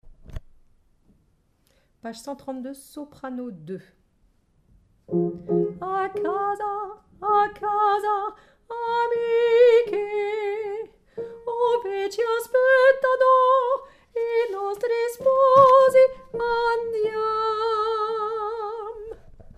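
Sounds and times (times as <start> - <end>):
soprano singing: 5.1 - 19.2.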